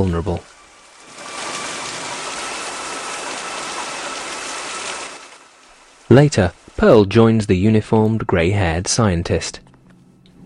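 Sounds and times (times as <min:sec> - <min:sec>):
speech: 0:00.0 - 0:00.5, 0:06.1 - 0:09.6
steady rain in a film scene: 0:00.0 - 0:08.0.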